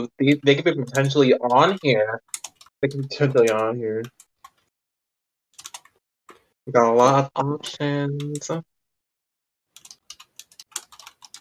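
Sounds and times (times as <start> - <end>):
speech: 0.0 - 4.2, 6.7 - 8.7
rapid typing on a computer keyboard for a school project: 0.3 - 4.7, 5.6 - 6.5, 9.7 - 11.4.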